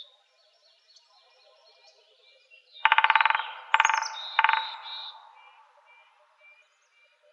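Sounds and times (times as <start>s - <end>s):
woodpeckers drumming: 2.9s - 6.0s.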